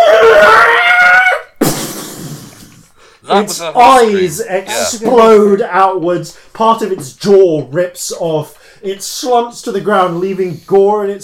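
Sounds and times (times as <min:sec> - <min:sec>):
person imitating a horse's dying scream: 0:00.0 - 0:01.6
speech: 0:03.3 - 0:11.2.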